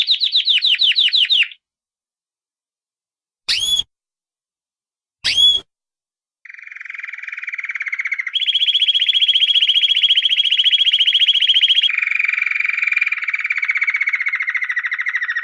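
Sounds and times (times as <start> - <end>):
canary singing trills: 0.0 - 1.6, 3.5 - 3.8, 5.2 - 5.6, 6.5 - 15.4.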